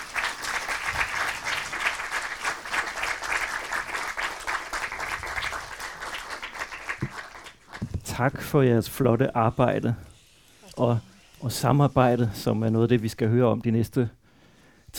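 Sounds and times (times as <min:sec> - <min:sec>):
audience applause for guests coming on stage: 0:00.0 - 0:07.9
speech: 0:08.2 - 0:10.1, 0:10.8 - 0:14.2.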